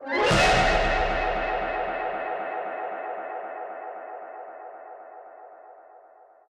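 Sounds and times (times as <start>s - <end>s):
brass music: 0.0s - 2.8s.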